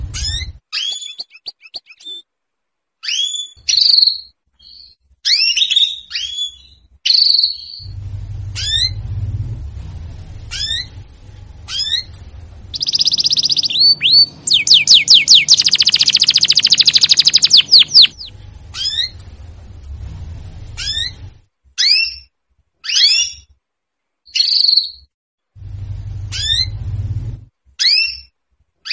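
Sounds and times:
Belgian canary giving a dense high trill with rapid rolls: 0.0 - 2.2, 3.0 - 9.4, 10.2 - 19.5, 20.6 - 23.5, 26.0 - 27.0, 27.8 - 28.9.

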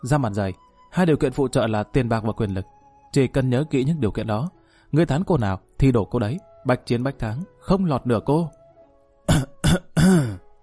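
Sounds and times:
speech: 0.0 - 8.6, 9.3 - 10.2
repeated dry coughing: 9.3 - 10.4.

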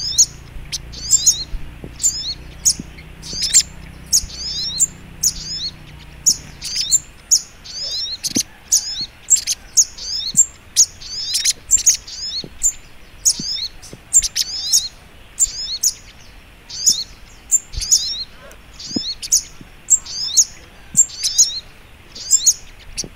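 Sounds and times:
little spiderhunter chirping: 0.0 - 23.1.

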